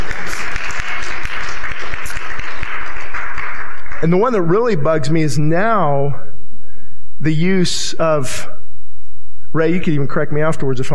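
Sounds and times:
crowd applause: 0:00.0 - 0:04.4
speech: 0:04.0 - 0:06.3, 0:07.2 - 0:08.6, 0:09.5 - 0:10.9.

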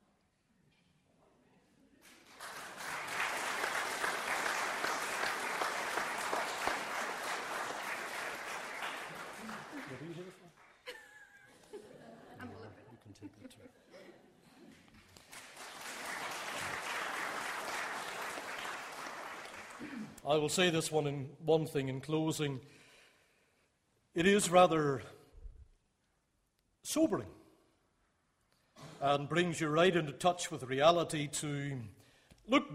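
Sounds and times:
audience applauding: 0:02.0 - 0:10.9, 0:15.0 - 0:20.2
laughter: 0:06.3 - 0:14.8
speech: 0:20.3 - 0:22.8, 0:24.2 - 0:25.2, 0:26.9 - 0:27.4, 0:29.0 - 0:32.7.

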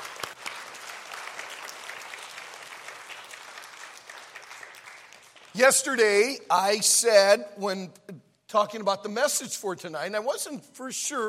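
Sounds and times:
audience applause: 0:00.0 - 0:06.2
speech: 0:05.6 - 0:11.2.

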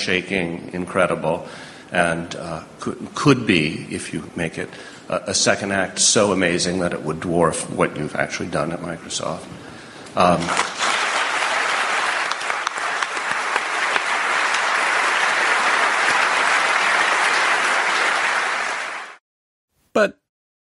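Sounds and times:
speech: 0:00.0 - 0:10.8
audience applause: 0:10.4 - 0:19.2.

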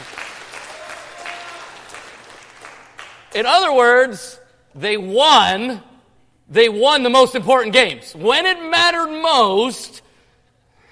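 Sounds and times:
audience clapping: 0:00.0 - 0:03.4
speech: 0:03.4 - 0:05.9, 0:06.5 - 0:10.0.

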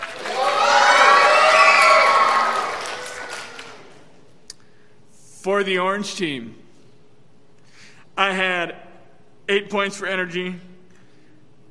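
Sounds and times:
children's team cheering loudly: 0:00.0 - 0:03.8
speech: 0:05.4 - 0:06.6, 0:08.2 - 0:08.8, 0:09.5 - 0:10.7.

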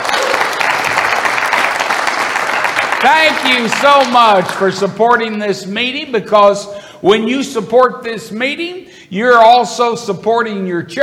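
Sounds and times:
audience applause: 0:00.0 - 0:04.8
speech: 0:03.0 - 0:11.0.

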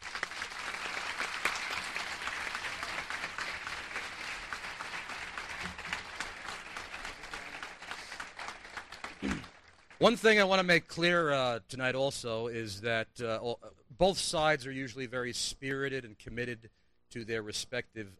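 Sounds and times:
audience applause welcoming a speaker at a debate event: 0:00.0 - 0:10.0
speech: 0:10.0 - 0:18.1.

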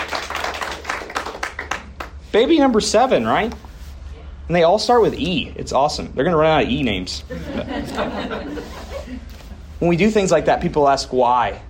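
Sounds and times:
audience clapping: 0:00.0 - 0:02.3
speech: 0:02.3 - 0:03.6, 0:04.5 - 0:08.8, 0:09.8 - 0:11.6
laughter: 0:07.2 - 0:09.7.

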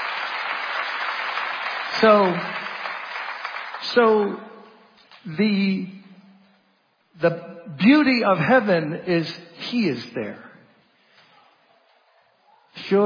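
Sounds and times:
audience clapping hands: 0:00.0 - 0:05.2
speech: 0:01.9 - 0:02.6, 0:03.9 - 0:04.5, 0:05.2 - 0:06.0, 0:07.2 - 0:10.5, 0:12.8 - 0:13.0.

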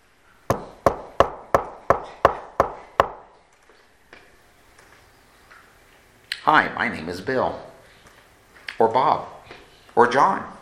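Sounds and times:
knocking on a wooden door: 0:00.5 - 0:03.2
speech: 0:06.5 - 0:07.7, 0:08.8 - 0:10.6.

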